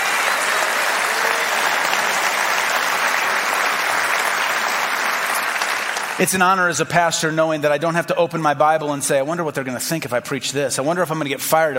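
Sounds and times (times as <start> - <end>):
audience applauding: 0.0 - 6.7
speech: 6.2 - 11.7.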